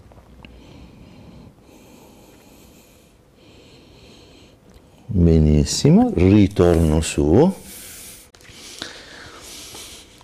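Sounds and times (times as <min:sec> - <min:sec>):
deep breaths during yoga stretch: 0:00.4 - 0:05.1, 0:07.6 - 0:10.2
speech: 0:05.1 - 0:07.6.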